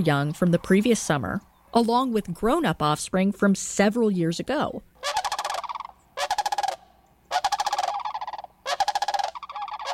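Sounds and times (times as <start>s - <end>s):
speech: 0.0s - 5.2s
cranes calling in a large gathering: 5.0s - 9.9s.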